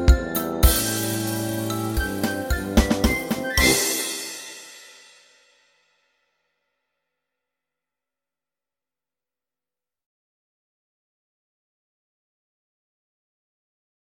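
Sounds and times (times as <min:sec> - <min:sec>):
Christmas song accompaniment: 0:00.0 - 0:05.2.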